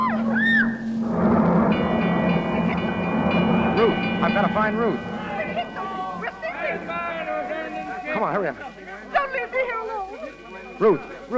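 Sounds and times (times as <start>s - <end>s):
ship engines reversing: 0.0s - 8.6s
speech: 4.2s - 5.1s, 8.2s - 10.0s, 10.8s - 11.3s.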